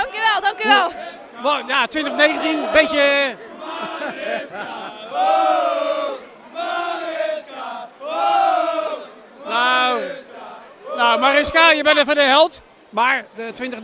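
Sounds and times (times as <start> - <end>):
laughter: 0.0 - 6.2
loud party crowd chanting and shouting celebrating a win: 0.0 - 13.8
speech: 1.4 - 6.0, 11.0 - 13.8.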